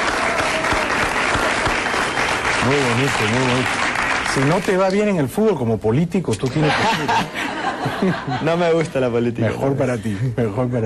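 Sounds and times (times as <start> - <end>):
applause: 0.0 - 5.2
speech: 2.6 - 10.8
laughter: 6.4 - 9.2.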